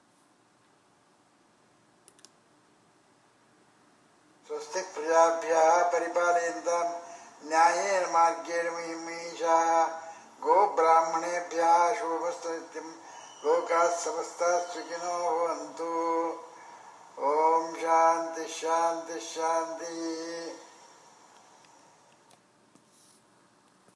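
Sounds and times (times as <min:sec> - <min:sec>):
Guruji chanting a closing mantra: 0:04.5 - 0:21.0.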